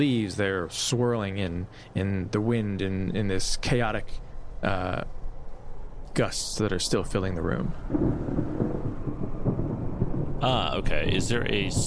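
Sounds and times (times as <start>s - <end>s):
speech: 0.0s - 5.2s, 6.2s - 9.0s, 10.4s - 11.8s
thunder peal: 7.6s - 11.8s.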